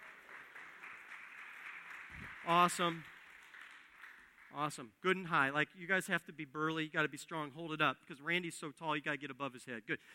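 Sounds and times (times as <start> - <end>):
crowd applause: 0.0 - 4.7
speech: 2.4 - 3.1, 4.6 - 10.1.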